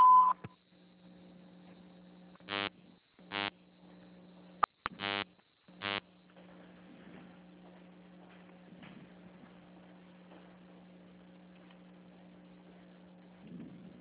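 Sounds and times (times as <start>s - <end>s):
beep tone of an automated phone menu: 0.0s - 0.4s
low electrical hum: 0.0s - 13.9s
buzzy pulsing tones: 2.4s - 2.7s, 3.3s - 3.5s, 4.8s - 6.1s.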